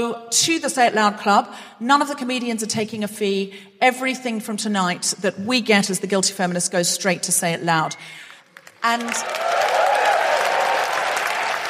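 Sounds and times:
speech: 0.0 - 9.7
audience applause at a live comedy charity show: 8.6 - 11.6.

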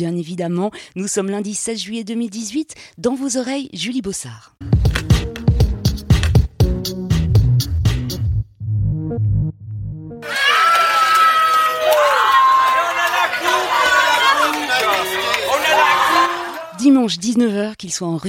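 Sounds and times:
speech: 0.0 - 5.0, 16.9 - 18.2
short rhythmic musical intro: 4.6 - 10.2
crowd cheering celebrating World Cup victory: 10.2 - 16.9.

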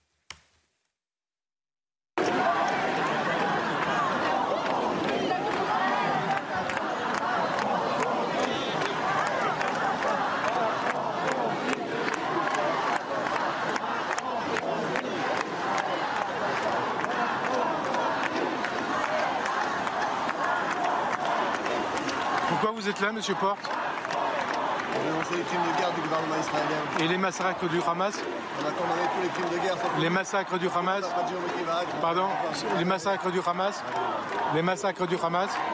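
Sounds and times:
large protest crowd roaring: 2.2 - 35.7
voices chanting: 2.2 - 35.7
speech: 22.9 - 23.8, 25.2 - 35.7.

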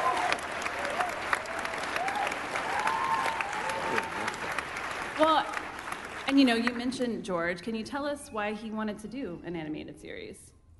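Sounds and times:
audience applause: 0.0 - 6.7
speech: 6.4 - 10.5.

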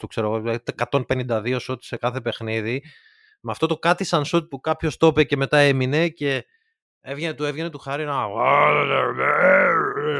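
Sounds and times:
speech: 0.0 - 10.1
human voice imitating a deep growling roar: 8.3 - 10.1.

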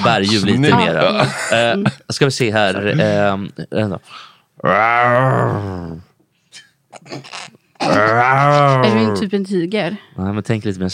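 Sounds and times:
speech: 0.0 - 6.1, 7.0 - 10.9
person imitating a bear growl: 4.6 - 6.1, 7.0 - 9.3.

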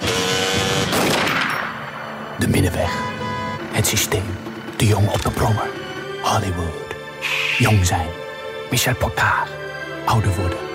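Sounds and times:
pistol shots: 0.8 - 2.0
steady tonal hum: 1.7 - 8.5
speech: 2.4 - 3.2, 3.8 - 10.6.

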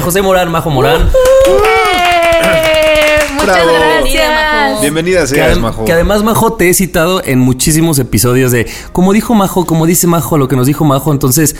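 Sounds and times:
speech: 0.0 - 2.8, 3.4 - 11.5
applause: 1.2 - 4.2.

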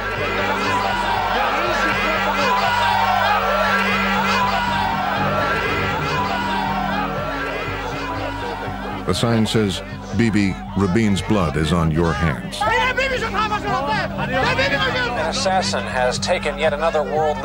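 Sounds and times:
crowd chanting outside hospital: 0.0 - 17.4
laughter: 0.0 - 17.4
speech: 9.1 - 17.4.

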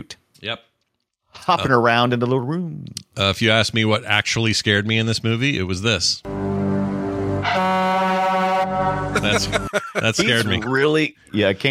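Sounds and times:
speech: 0.4 - 0.7, 1.4 - 6.3, 8.8 - 11.6
loud air horn blast: 6.3 - 9.7
laughter: 9.0 - 10.9.

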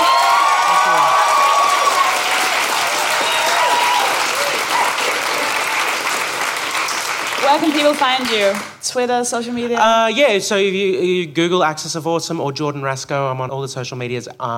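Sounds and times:
audience applause: 0.0 - 8.8
speech: 7.5 - 14.5.

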